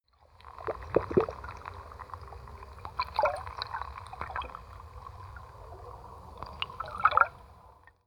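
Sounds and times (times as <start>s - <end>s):
sea: 0.0s - 8.0s.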